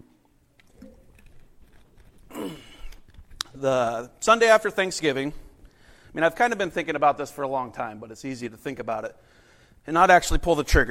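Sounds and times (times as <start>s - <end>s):
person drinking water: 0.5s - 3.6s
speech: 3.6s - 5.4s, 6.1s - 10.9s.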